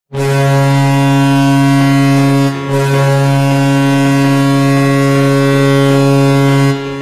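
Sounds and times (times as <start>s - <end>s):
goal horn: 0.1s - 7.0s.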